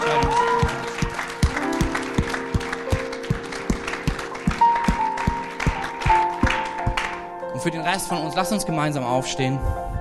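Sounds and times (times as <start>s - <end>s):
audience clapping in a steady even rhythm: 0.0s - 7.4s
speech: 7.6s - 9.9s.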